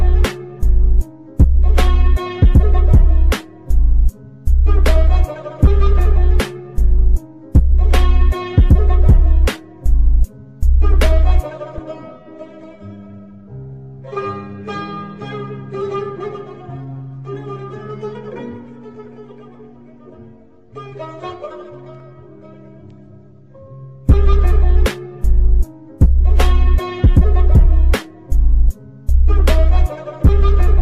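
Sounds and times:
trap remix: 0.0 - 11.8, 24.1 - 30.8.

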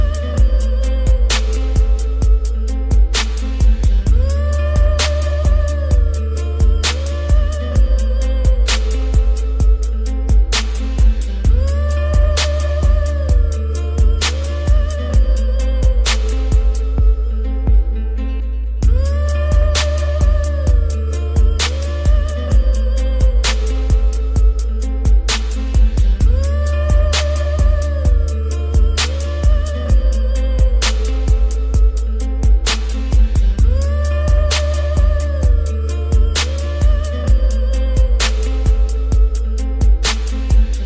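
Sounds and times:
bass boosted music: 0.0 - 40.8.

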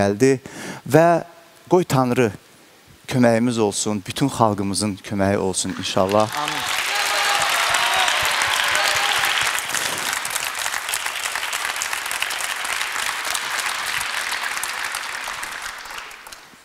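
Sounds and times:
speech: 0.0 - 2.4, 3.1 - 6.7
audience applause after a song performance: 5.6 - 16.6.

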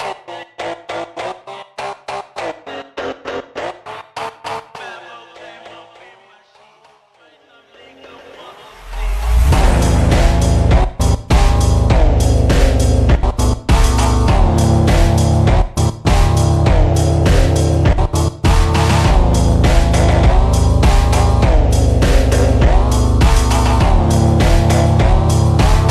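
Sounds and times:
slowed reverb music: 8.4 - 25.8.

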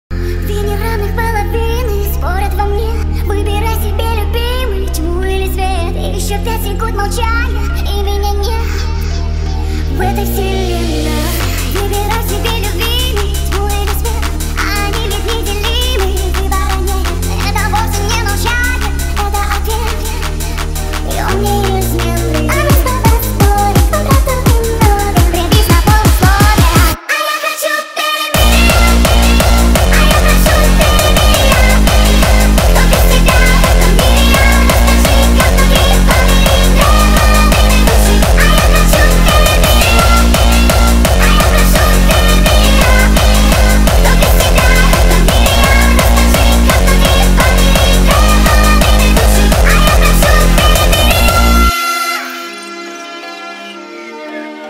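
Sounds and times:
hardstyle remix: 0.1 - 54.6.

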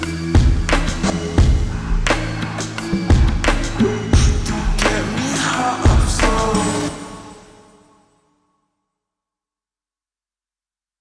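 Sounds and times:
slowed reverb music: 0.0 - 8.5.

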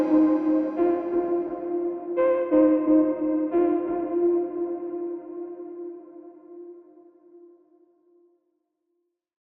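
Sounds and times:
slowed reverb music: 0.0 - 6.8.

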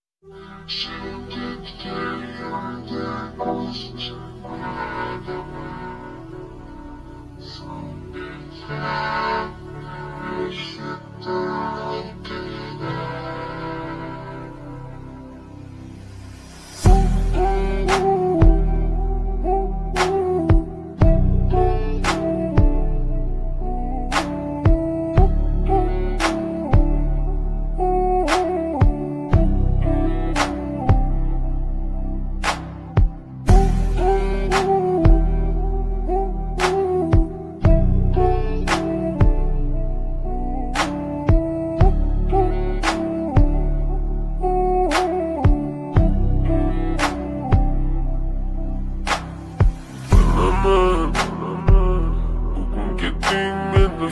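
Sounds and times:
slowed music with reverb: 0.2 - 54.0.

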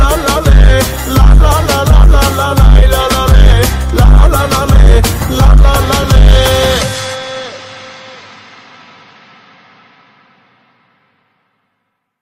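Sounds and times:
Armenian bass music: 0.0 - 7.4.

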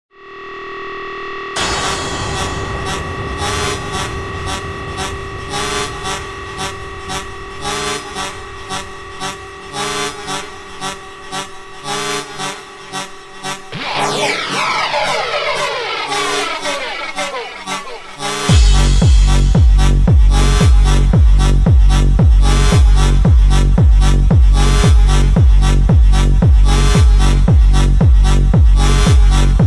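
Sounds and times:
slowed music remix: 1.5 - 29.5.

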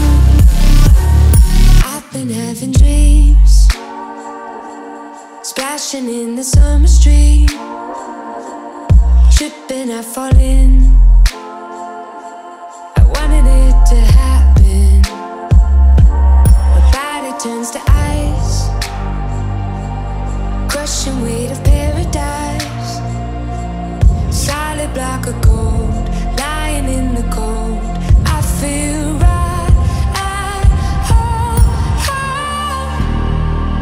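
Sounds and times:
bass boosted remix music: 0.0 - 1.9, 2.8 - 3.8, 6.6 - 7.6, 8.9 - 9.5, 10.3 - 11.4, 13.0 - 33.8.

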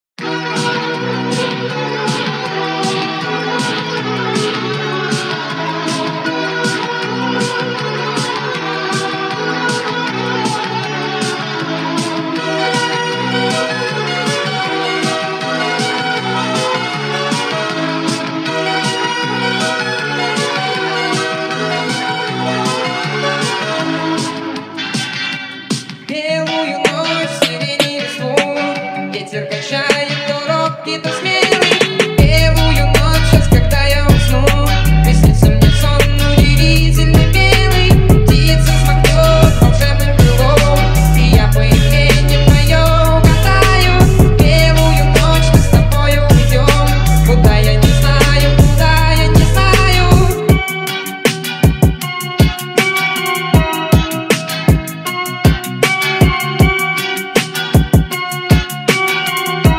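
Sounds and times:
phonk music: 0.2 - 59.7.

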